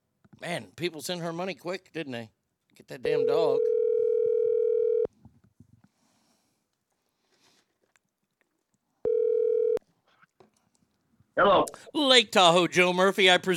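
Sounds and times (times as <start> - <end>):
speech: 0.4 - 3.7, 11.4 - 13.5
telephone dial tone: 3.6 - 5.1, 9.0 - 9.8.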